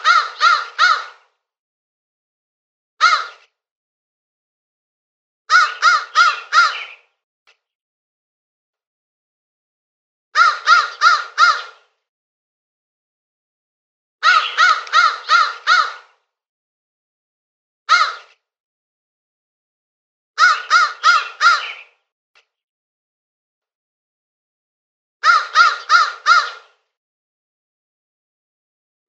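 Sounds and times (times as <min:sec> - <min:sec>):
crow cawing with harsh rasping notes: 0:00.0 - 0:01.3, 0:03.0 - 0:03.4, 0:05.5 - 0:07.0, 0:10.4 - 0:11.8, 0:14.2 - 0:16.2, 0:17.9 - 0:18.4, 0:20.4 - 0:22.0, 0:25.2 - 0:26.7.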